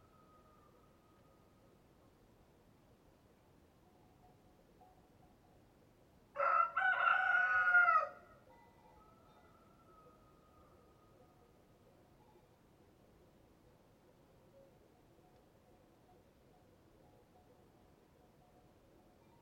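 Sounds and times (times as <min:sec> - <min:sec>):
rooster crowing cock-a-doodle-doo: 0:06.4 - 0:08.2.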